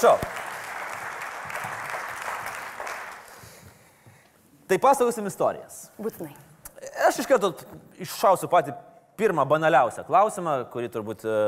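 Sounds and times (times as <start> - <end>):
speech: 0.0 - 0.3, 4.7 - 11.4
audience applause welcoming a writer and journalist as a guest on a show: 0.0 - 3.5.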